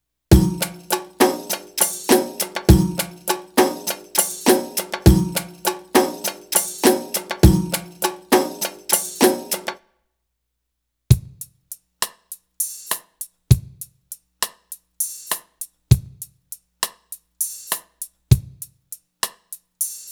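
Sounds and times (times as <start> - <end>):
Arabic rhythm percussion: 0.3 - 9.8.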